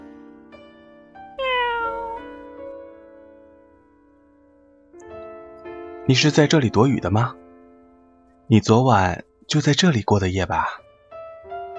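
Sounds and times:
cat meowing: 1.4 - 2.3
speech: 6.1 - 7.4, 8.5 - 10.8.

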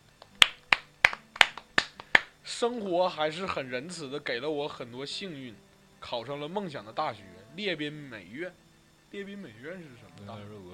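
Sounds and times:
applause: 0.2 - 2.4
speech: 2.6 - 10.7.

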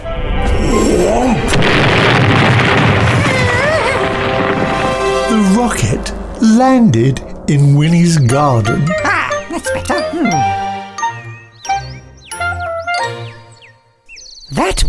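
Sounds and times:
rocket blasting off with a loud roar and deep rumble: 0.2 - 9.9
speech: 6.0 - 10.6, 14.5 - 14.8.

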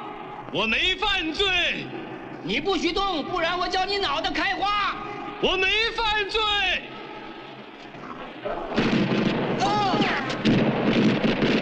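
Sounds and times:
speech: 0.5 - 7.0, 8.4 - 9.0
gunshots fired by police: 8.2 - 11.6.

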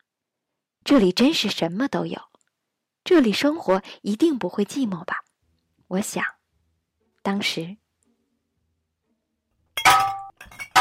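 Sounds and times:
speech: 0.9 - 2.3, 3.1 - 5.2, 5.9 - 6.4, 7.2 - 7.8
glass shochu bottle clattering and rolling down outdoor shop stairs: 9.8 - 10.7.

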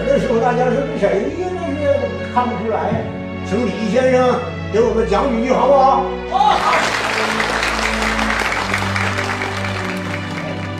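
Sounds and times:
speech: 0.0 - 7.4
audience applause: 6.5 - 10.7.

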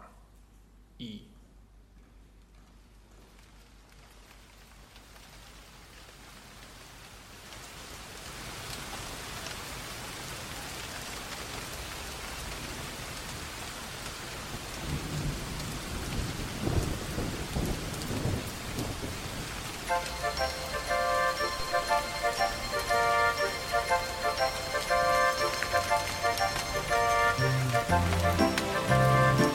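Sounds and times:
speech: 1.0 - 1.3, 20.0 - 20.6
heavy rain: 2.6 - 29.5
thunder rumbling: 14.8 - 29.5.

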